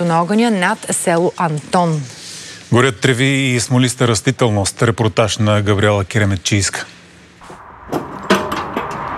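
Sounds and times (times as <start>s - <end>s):
speech: 0.0s - 7.0s
loading hoses, shovels and water: 7.4s - 9.0s.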